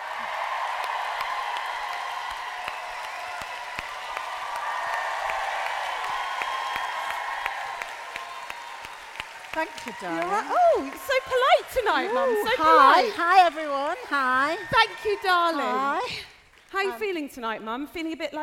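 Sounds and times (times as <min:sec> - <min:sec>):
crowd applauding: 0:00.0 - 0:17.0
speech: 0:09.6 - 0:18.4.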